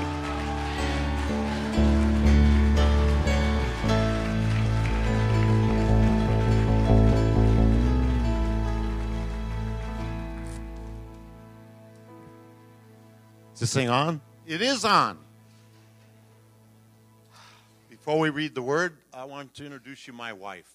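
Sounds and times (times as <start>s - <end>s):
audience clapping: 0.0s - 11.5s
low musical chords: 0.0s - 15.4s
speech: 13.7s - 15.2s, 18.1s - 20.7s.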